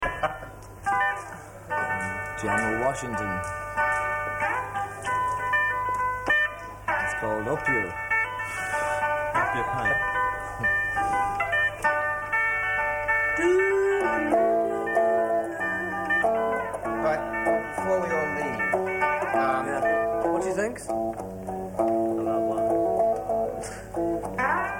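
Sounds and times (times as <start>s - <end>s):
improvised music: 0.0s - 24.7s.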